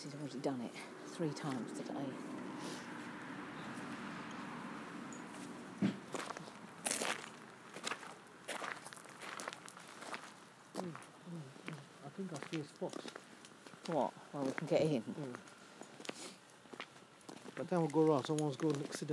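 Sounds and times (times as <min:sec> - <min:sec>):
speech: 0:00.0 - 0:02.8, 0:12.5 - 0:13.2, 0:13.9 - 0:15.5, 0:17.6 - 0:19.1
footsteps on a lawn during a walk with a dog: 0:01.4 - 0:14.7, 0:15.8 - 0:17.7.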